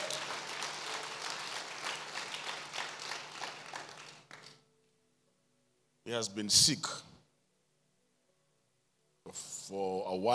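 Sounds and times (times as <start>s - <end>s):
audience clapping: 0.0s - 4.6s
speech: 6.1s - 7.1s, 9.7s - 10.3s.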